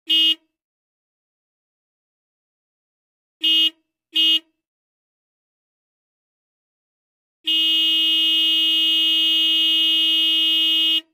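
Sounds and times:
car horn klaxon: 0.0s - 0.6s, 3.4s - 4.6s, 7.4s - 11.1s.

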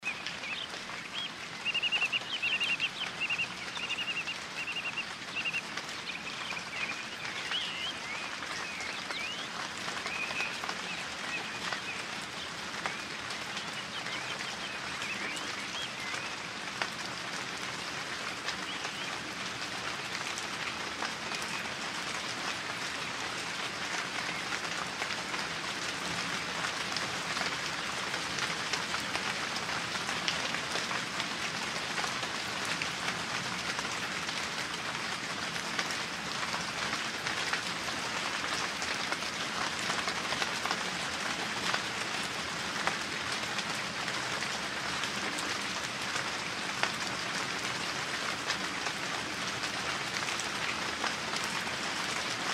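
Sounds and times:
relaxing autumn rain: 0.0s - 52.5s.

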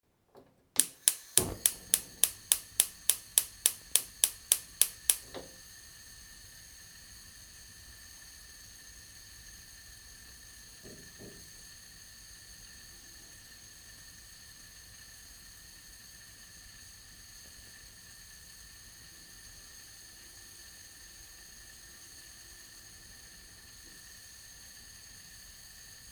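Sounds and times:
gas stove burner: 0.8s - 9.7s.

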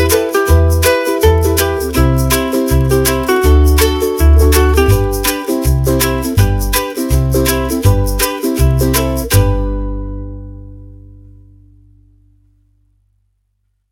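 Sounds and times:
happy background music: 0.0s - 10.6s.

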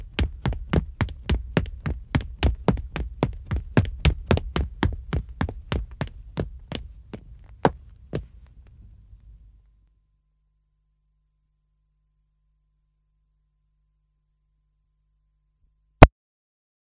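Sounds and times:
running footsteps on a wooden surface: 0.0s - 8.6s.

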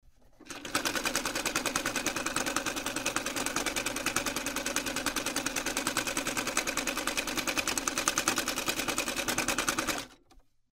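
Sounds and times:
sewing machine stitching: 0.3s - 10.4s.

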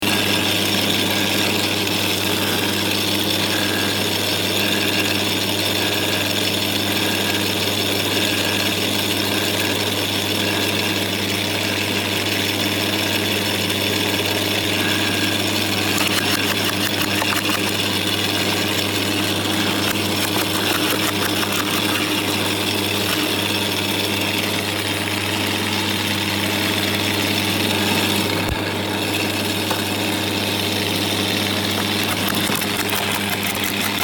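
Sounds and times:
garden wood chipper: 0.0s - 34.0s.

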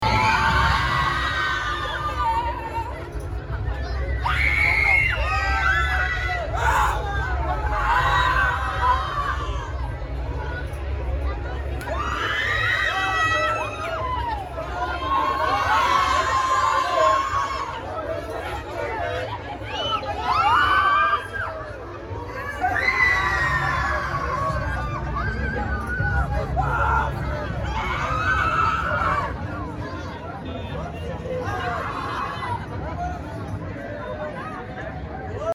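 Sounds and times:
amusement park swing ride: 0.0s - 35.5s.

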